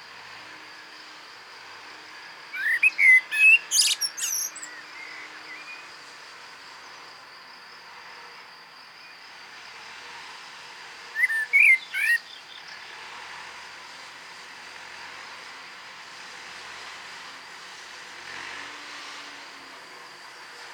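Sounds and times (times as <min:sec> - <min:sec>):
common blackbird whistling song: 0:02.5 - 0:05.8, 0:11.2 - 0:12.6.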